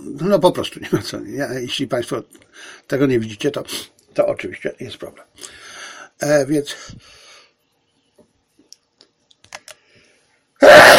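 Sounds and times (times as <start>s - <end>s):
speech: 0.0s - 2.3s, 2.9s - 5.3s, 6.2s - 6.9s
faint clicks: 8.2s - 9.8s
sneeze: 10.6s - 10.9s.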